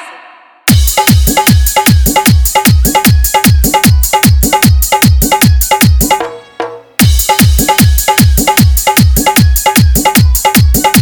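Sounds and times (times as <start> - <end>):
Bhojpuri dholak bass music mix: 0.7 - 10.9.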